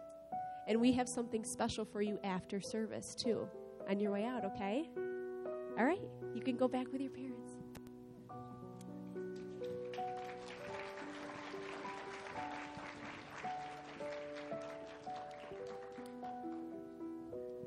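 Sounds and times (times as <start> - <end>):
speech: 0.7 - 5.0, 5.8 - 7.6
keyboard chords: 2.5 - 17.6
audience applause for children: 9.2 - 17.0.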